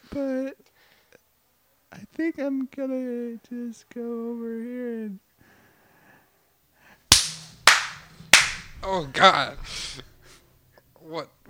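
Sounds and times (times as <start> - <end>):
speech: 0.1 - 0.7, 2.2 - 5.3, 8.8 - 10.1, 11.1 - 11.4
bat striking a person: 7.1 - 8.8.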